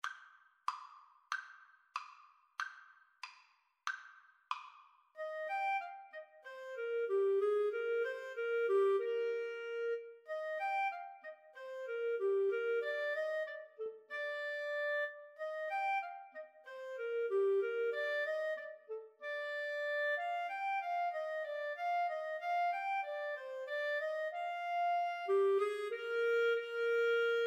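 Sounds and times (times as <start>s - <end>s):
clarinet duet: 5.2s - 27.4s.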